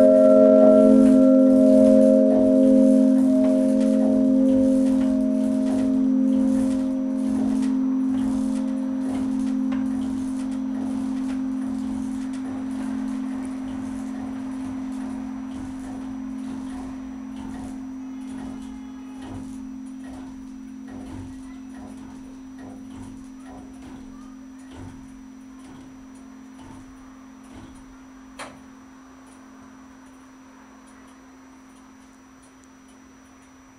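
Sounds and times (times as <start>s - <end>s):
church bells ringing: 0.0s - 18.6s.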